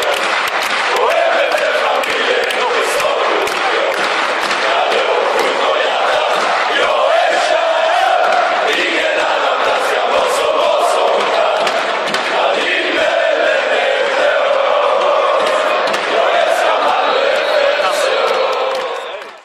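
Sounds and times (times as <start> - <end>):
football fans chanting: 0.0 - 19.4.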